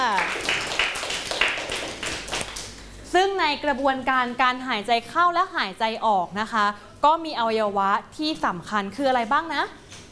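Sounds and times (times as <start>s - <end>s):
classroom applause: 0.0s - 2.9s
speech: 3.2s - 9.8s.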